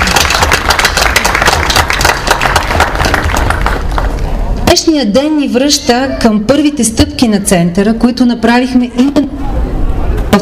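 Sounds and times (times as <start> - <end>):
crowd applause: 0.0 - 4.3
speech: 4.7 - 9.5.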